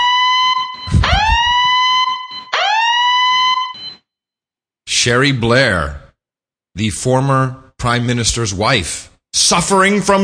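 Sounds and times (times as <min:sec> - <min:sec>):
alarm siren sound effect: 0:00.0 - 0:04.2
speech: 0:05.0 - 0:06.0, 0:06.8 - 0:10.2.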